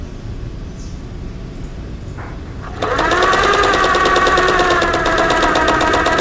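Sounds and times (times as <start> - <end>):
sewing machine running in textile factory: 2.5 - 6.1.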